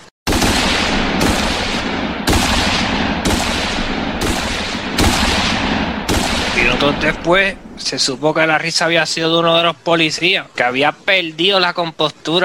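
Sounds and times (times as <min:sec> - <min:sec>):
rifle gunfire volley: 0:00.3 - 0:08.1
speech: 0:06.8 - 0:12.4.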